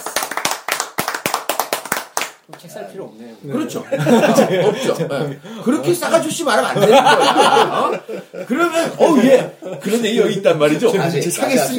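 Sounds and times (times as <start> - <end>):
hand clapping: 0.0 - 2.7
speech: 2.5 - 11.7
laughter: 3.6 - 10.3.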